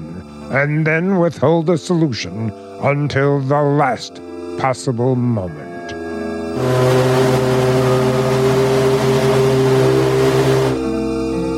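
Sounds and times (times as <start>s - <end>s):
speech: 0.5s - 5.7s, 6.6s - 7.4s
ocean liner engines preparing to sail: 6.5s - 11.0s.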